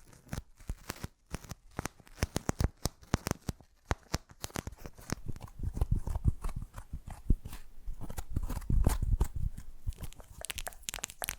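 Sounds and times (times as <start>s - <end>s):
sharp taps and crinkles: 0.0s - 11.3s.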